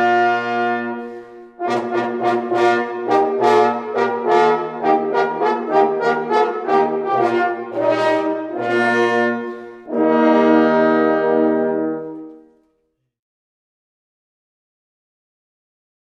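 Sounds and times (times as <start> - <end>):
hunting horn players sounding a hunting call: 0.0 - 12.6.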